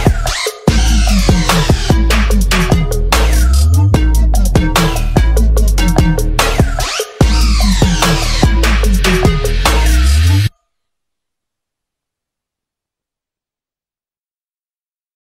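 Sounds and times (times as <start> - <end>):
instrumental music: 0.0 - 10.5.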